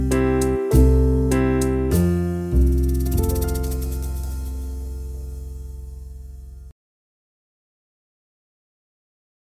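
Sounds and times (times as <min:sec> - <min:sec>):
backing track with slurs: 0:00.0 - 0:06.0.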